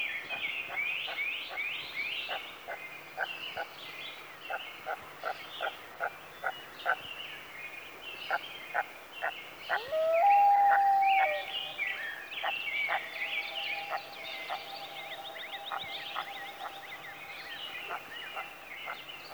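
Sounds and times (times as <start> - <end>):
morning songbird chorus: 0.0 - 19.3
loon wails: 9.7 - 12.0, 12.9 - 17.2.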